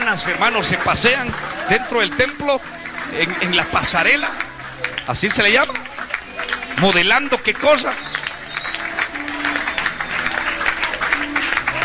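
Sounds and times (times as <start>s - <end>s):
audience applauding in a church: 0.0s - 11.8s
faint murmured voices: 0.0s - 11.8s
laughter: 0.0s - 11.8s
speech: 0.1s - 4.5s, 5.1s - 5.9s, 6.8s - 8.1s.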